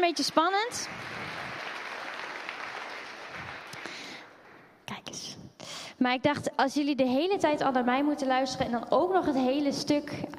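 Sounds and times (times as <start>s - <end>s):
speech: 0.0s - 1.4s, 6.0s - 10.3s
audience applause: 0.0s - 4.6s.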